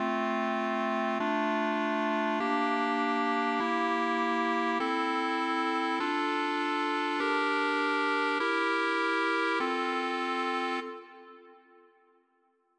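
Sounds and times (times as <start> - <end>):
lower clarinet version: 0.0 - 12.2.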